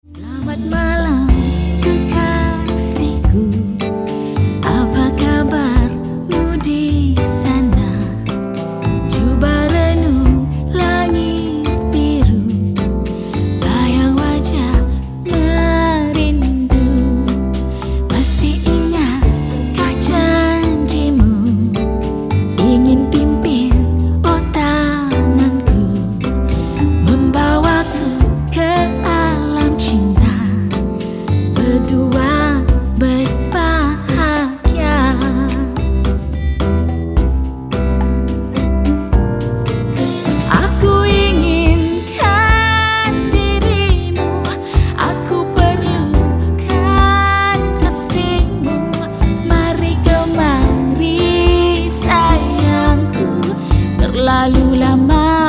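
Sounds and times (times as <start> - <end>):
bossa nova music: 0.0 - 55.4.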